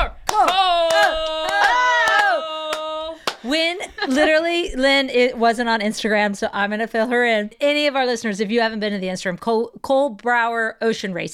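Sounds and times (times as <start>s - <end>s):
slow clap: 0.2s - 3.6s
speech: 3.6s - 11.3s.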